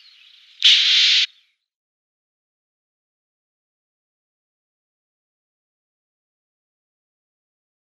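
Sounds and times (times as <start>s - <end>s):
Eurasian Blue Tit calls: 0.0s - 1.7s.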